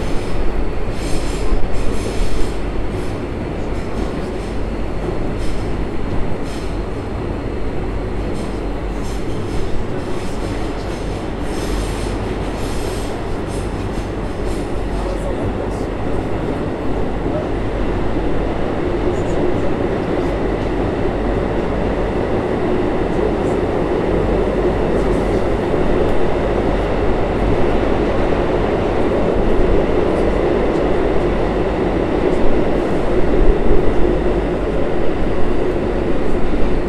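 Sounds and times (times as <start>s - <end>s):
subway train: 0.0s - 36.8s.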